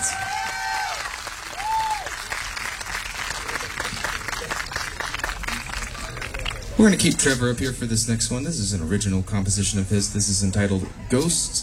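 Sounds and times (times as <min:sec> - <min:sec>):
audience applause: 0:00.0 - 0:07.1
speech: 0:06.8 - 0:11.6.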